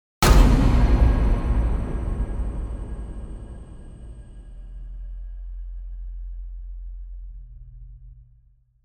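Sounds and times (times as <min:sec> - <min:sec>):
monster impact: 0:00.2 - 0:05.3.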